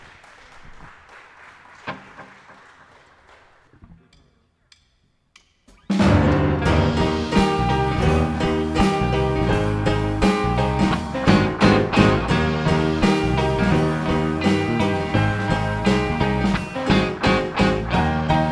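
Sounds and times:
crowd clapping and cheering: 0.0 - 4.1, 7.4 - 18.4
loud band playing a song: 5.9 - 18.4.

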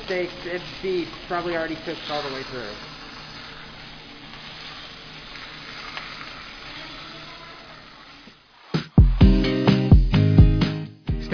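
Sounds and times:
thick steak sizzling in a cast iron skillet: 0.0 - 8.8
speech: 0.1 - 2.9
loud rhythmic tonal hits: 8.8 - 10.7.

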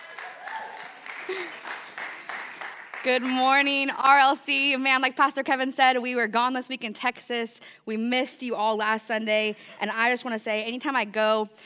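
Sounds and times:
church congregation clapping to welcome a pastor at a Sunday service: 0.0 - 3.9
speech: 1.3 - 2.0, 3.0 - 11.6.

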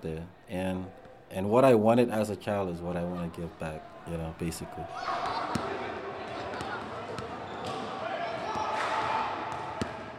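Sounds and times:
speech: 0.0 - 5.8
crowd chatter at Rec Night: 2.9 - 10.1
basketballs bouncing as kids shoot hoops at Rec Night: 5.0 - 10.1.

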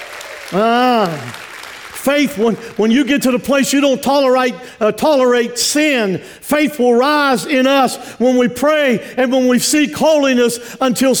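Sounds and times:
crowd clapping: 0.0 - 3.1
loud sustained cheer: 0.4 - 1.4
speech: 0.5 - 1.4, 2.0 - 11.1.

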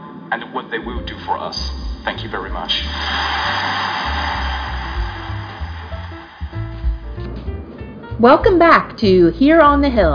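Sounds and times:
speech: 0.3 - 3.9, 8.2 - 10.1
audience applause: 2.7 - 7.2.

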